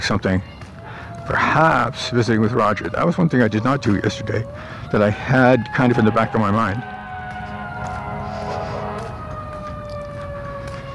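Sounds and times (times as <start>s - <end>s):
speech: 0.0s - 0.6s, 1.3s - 6.9s
fire truck engine rumble: 0.5s - 10.9s
fire truck siren wailing: 0.7s - 10.9s.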